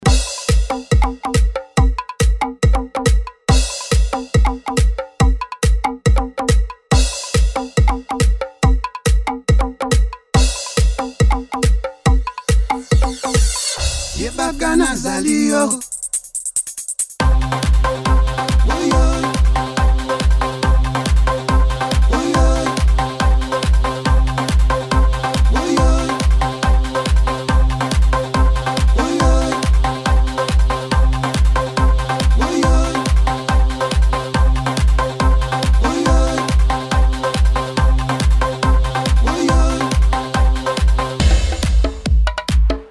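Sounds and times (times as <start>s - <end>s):
tribal music: 0.0s - 42.8s.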